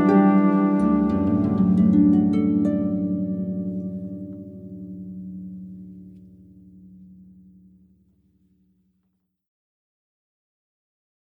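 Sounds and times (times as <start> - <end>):
trumpet: 0.0 - 4.2
harp: 0.0 - 8.0.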